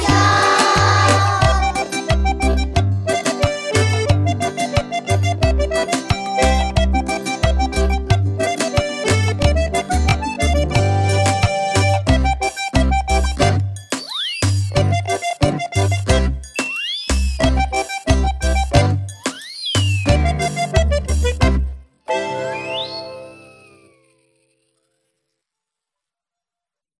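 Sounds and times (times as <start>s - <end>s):
music playing: 0.0s - 24.3s.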